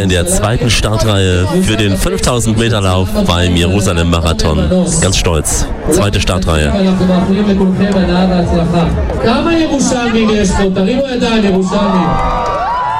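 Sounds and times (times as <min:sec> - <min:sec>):
speech: 0:00.0 - 0:12.4
runners cheering and whooping at race start: 0:11.6 - 0:12.9.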